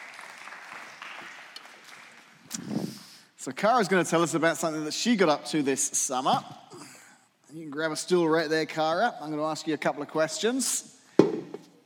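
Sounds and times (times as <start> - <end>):
audience round of applause: 0.0 - 2.5
speech: 3.4 - 6.6, 7.6 - 11.3.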